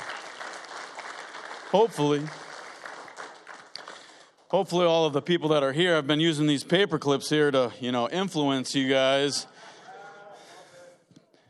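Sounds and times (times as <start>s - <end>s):
audience clapping in welcome: 0.0s - 5.0s
speech: 1.7s - 2.4s, 4.5s - 9.7s.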